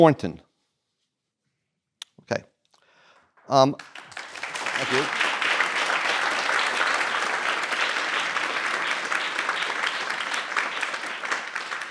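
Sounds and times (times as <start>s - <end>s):
speech: 0.0s - 0.4s, 2.3s - 2.5s, 3.5s - 4.0s, 4.8s - 5.2s
audience ovation: 3.7s - 11.8s.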